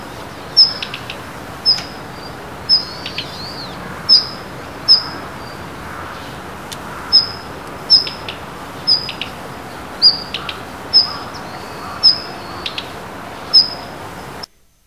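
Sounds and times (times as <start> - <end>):
joubitaki bird calling: 0.0 - 14.4.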